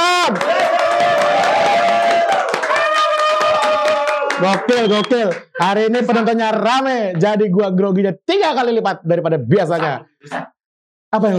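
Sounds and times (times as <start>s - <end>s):
studio audience clapping: 0.0s - 6.2s
speech: 4.4s - 11.3s.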